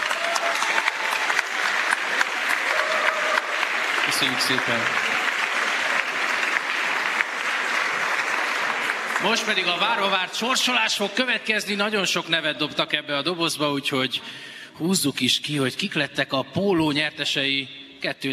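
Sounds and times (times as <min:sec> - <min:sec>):
audience applause: 0:00.0 - 0:11.0
speech: 0:04.1 - 0:05.2, 0:09.2 - 0:18.3.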